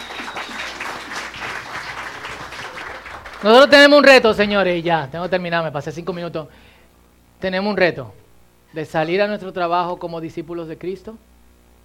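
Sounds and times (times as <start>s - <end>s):
audience applause: 0.0s - 3.7s
speech: 3.4s - 6.7s, 7.4s - 11.3s.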